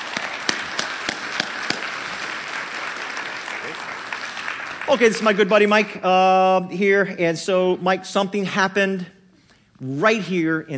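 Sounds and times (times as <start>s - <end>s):
sharp individual claps: 0.0s - 5.0s
crowd clapping: 0.0s - 6.0s
speech: 4.9s - 9.2s, 9.8s - 10.7s.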